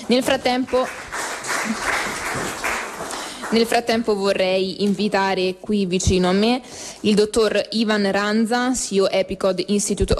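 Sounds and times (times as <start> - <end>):
speech: 0.1 - 1.0, 1.6 - 2.7, 3.5 - 10.1
audience applause: 0.6 - 3.8.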